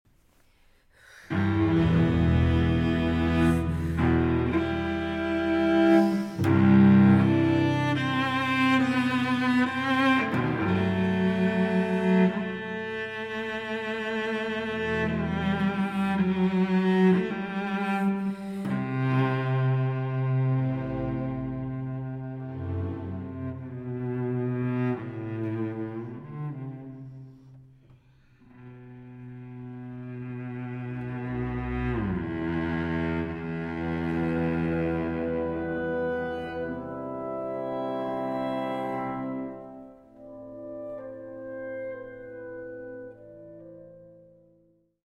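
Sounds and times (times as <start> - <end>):
cello concerto adagio: 0.4 - 44.6.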